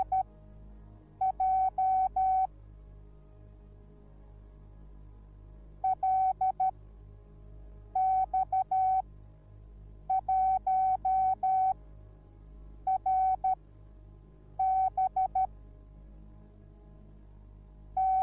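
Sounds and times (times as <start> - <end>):
morse code beeps: 0.0 - 0.2, 1.2 - 2.5, 5.8 - 6.7, 8.0 - 9.0, 10.1 - 11.8, 12.9 - 13.6, 14.6 - 15.5, 18.0 - 18.2.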